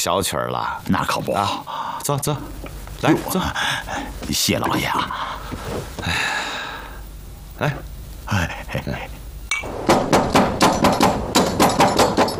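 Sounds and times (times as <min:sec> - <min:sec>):
speech: 0:00.0 - 0:06.4, 0:07.6 - 0:09.7
knocking on a door: 0:09.9 - 0:12.3.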